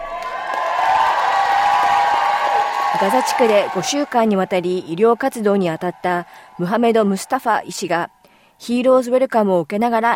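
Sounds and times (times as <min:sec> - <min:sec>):
applause at Perth airport: 0:00.0 - 0:07.4
crowd cheering at Perth airport: 0:00.0 - 0:08.2
speech: 0:03.0 - 0:10.1.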